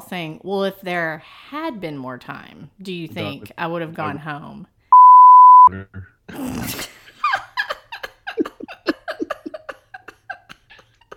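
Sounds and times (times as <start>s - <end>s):
speech: 0.1s - 4.8s, 5.7s - 7.0s
censor bleep: 5.0s - 5.7s.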